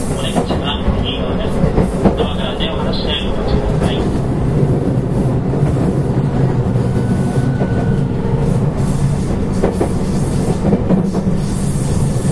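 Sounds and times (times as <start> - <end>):
223 series electric train on a Kobe Line special rapid service rumbling: 0.0 - 12.3.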